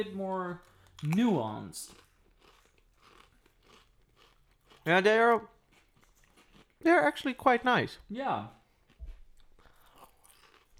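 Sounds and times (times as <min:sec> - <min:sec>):
speech: 0:00.0 - 0:02.0, 0:04.8 - 0:05.6, 0:06.8 - 0:08.6
regular crisps crunching: 0:00.6 - 0:07.3, 0:09.8 - 0:10.7.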